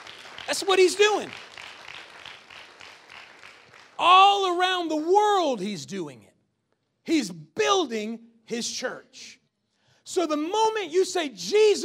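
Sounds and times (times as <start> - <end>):
audience hand clapping: 0.0 - 4.6
speech: 0.5 - 1.5, 4.0 - 6.3, 7.1 - 9.4, 10.1 - 11.8.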